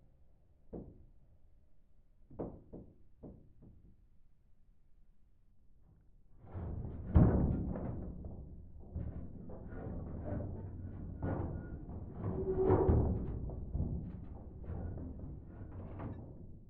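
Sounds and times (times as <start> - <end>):
ship hull creaking inside a ship's hull: 7.3 - 16.6.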